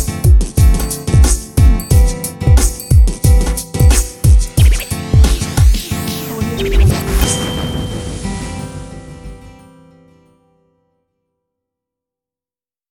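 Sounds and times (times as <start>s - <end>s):
hip hop intro jingle: 0.0s - 10.0s.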